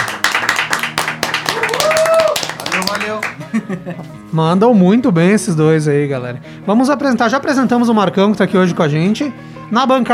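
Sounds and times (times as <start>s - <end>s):
round of applause: 0.0s - 3.4s
speech: 3.1s - 10.1s
laughter: 3.3s - 4.2s.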